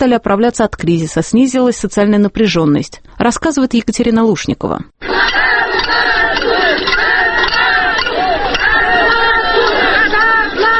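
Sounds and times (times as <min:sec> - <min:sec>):
speech: 0:00.0 - 0:07.6
protesting factory workers shouting at a rally: 0:05.0 - 0:10.7.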